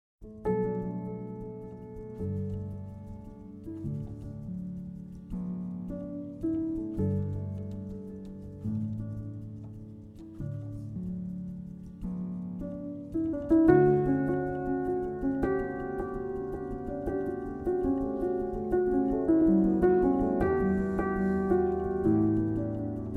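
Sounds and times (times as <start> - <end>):
piano piece: 0.2 - 23.1.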